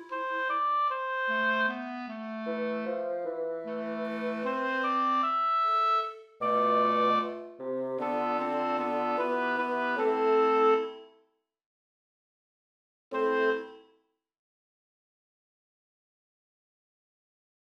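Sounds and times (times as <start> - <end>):
melody: 0.0 - 11.1.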